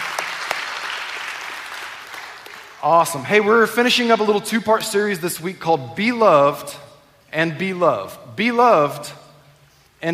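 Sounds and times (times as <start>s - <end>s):
church congregation applauding to welcome guests: 0.0s - 2.9s
speech: 2.8s - 9.2s.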